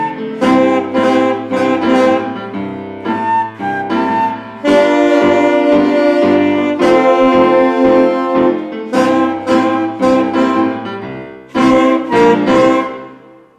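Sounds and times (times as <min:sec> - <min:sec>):
saxophone: 0:00.0 - 0:13.5
transverse flutes: 0:00.0 - 0:13.5.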